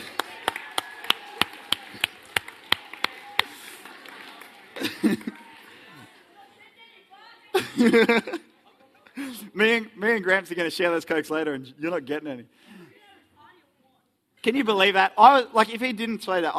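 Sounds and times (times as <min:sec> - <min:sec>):
audience clapping: 0:00.0 - 0:06.4
laughter: 0:03.6 - 0:06.3, 0:07.5 - 0:09.5
speech: 0:07.8 - 0:08.4, 0:09.6 - 0:12.7, 0:14.4 - 0:16.5.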